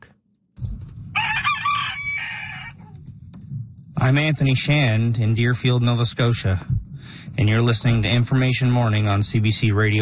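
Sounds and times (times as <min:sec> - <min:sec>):
rooster crowing: 0:01.1 - 0:03.0
speech: 0:04.0 - 0:06.8, 0:07.4 - 0:10.0.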